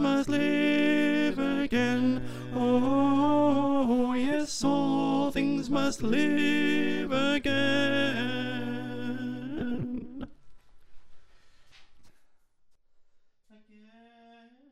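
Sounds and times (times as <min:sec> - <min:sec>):
alto choir singing: 0:00.0 - 0:10.3.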